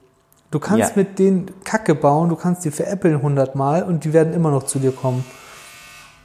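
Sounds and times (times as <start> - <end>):
speech: 0.5 - 5.4
doorbell buzzer: 5.4 - 6.2.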